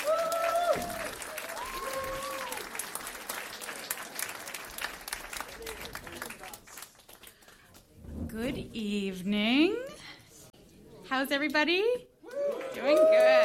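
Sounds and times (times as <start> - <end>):
audience applauding the host at a Friday night show in Norris Point: 0.0 - 8.0, 12.2 - 13.4
speech: 8.5 - 9.8, 11.1 - 12.1, 12.8 - 13.4.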